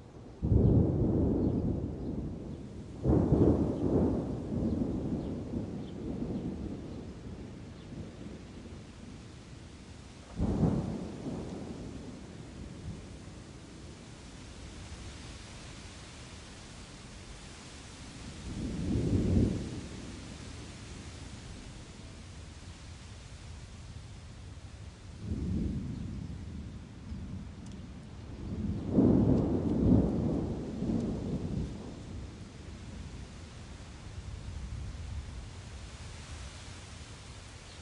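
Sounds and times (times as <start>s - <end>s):
steady hiss of rain: 0.0s - 37.8s
thunder rolling: 0.4s - 7.9s, 10.3s - 13.1s, 25.2s - 32.4s.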